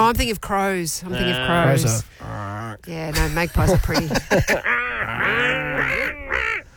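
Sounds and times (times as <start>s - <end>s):
speech: 0.1s - 6.6s
laughter: 3.1s - 6.5s
seagull squawking: 4.7s - 6.6s.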